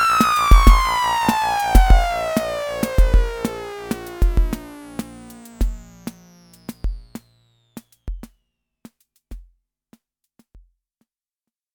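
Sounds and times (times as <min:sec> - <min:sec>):
Waldorf Rocket mono synthesizer oscillator sync: 0:00.0 - 0:07.3.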